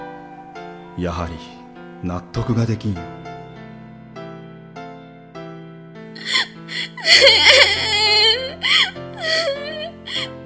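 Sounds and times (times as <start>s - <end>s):
speech: 1.0s - 3.2s
person sobbing and whimpering: 6.2s - 10.4s.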